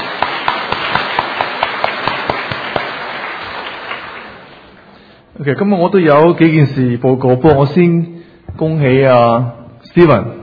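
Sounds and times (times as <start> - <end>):
gathering clapping in unison to welcome newcomers: 0.0 - 5.0
speech: 5.4 - 10.4.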